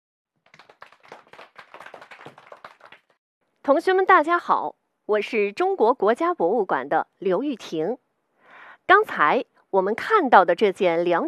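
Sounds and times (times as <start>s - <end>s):
audience clapping: 0.4s - 3.2s
speech: 3.7s - 8.0s, 8.9s - 11.2s.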